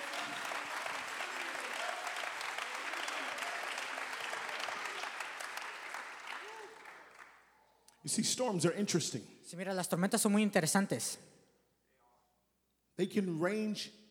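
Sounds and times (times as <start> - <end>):
audience clapping hands: 0.0 - 7.5
speech: 8.0 - 11.3, 13.0 - 14.1.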